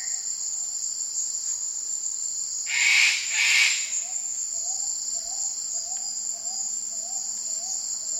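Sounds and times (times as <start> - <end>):
Eclectus parrot giving harsh rasping screeches in Indonesia: 2.7 - 3.8.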